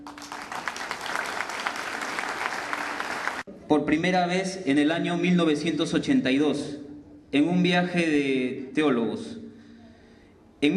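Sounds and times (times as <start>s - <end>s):
audience applause: 0.0s - 3.4s
speech: 3.7s - 9.4s.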